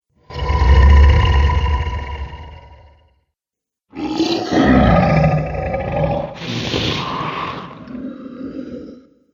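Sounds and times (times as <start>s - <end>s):
dragon monster sounds: 0.3s - 2.9s, 3.9s - 9.2s.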